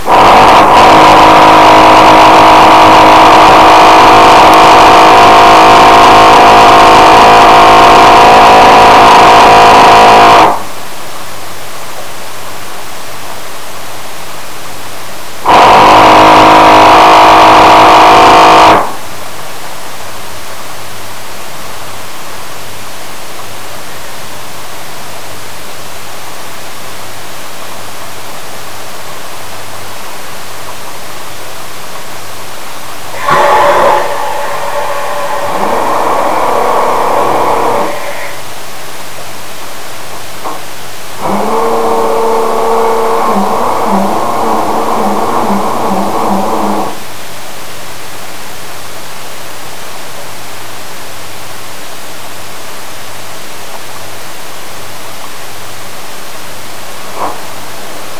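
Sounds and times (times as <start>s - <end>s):
grinding: 0.0s - 10.6s, 15.5s - 19.0s, 33.2s - 38.4s, 41.2s - 47.0s.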